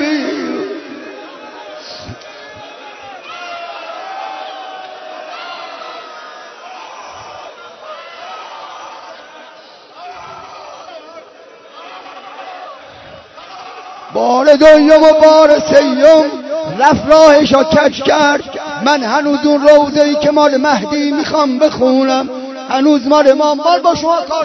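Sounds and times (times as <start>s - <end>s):
crowd of mourners shouting and weeping Ya Hussein at a religious mourning gathering: 0.0s - 18.8s
speech: 14.2s - 24.4s.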